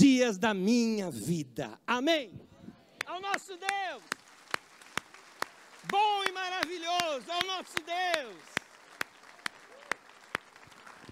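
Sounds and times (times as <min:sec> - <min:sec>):
speech: 0:00.2 - 0:02.5, 0:03.1 - 0:04.2, 0:05.8 - 0:08.6
audience applause: 0:03.0 - 0:11.1.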